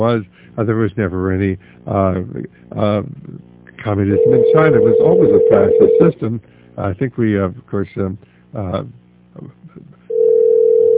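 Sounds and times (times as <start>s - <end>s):
speech: 0.0s - 10.0s
telephone line tone after a call-in caller is lost: 4.2s - 6.1s, 10.1s - 10.9s.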